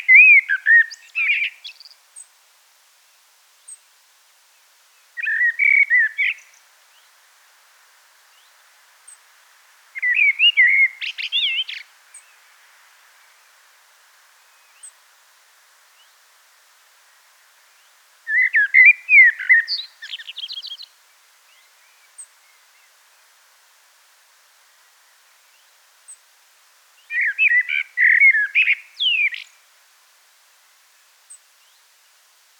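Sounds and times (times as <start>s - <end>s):
Turdus merula: 0.0s - 2.3s, 5.2s - 6.6s, 10.0s - 12.3s, 18.3s - 22.7s, 27.1s - 29.6s.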